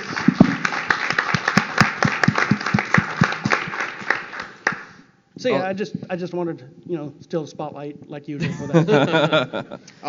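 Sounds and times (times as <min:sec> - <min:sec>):
rhythmic round of applause: 0:00.0 - 0:05.1
speech: 0:05.4 - 0:10.0
laughter: 0:08.4 - 0:09.9.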